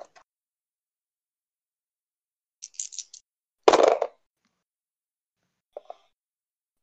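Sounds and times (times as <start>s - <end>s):
dice clattering onto a table: 2.6s - 4.1s.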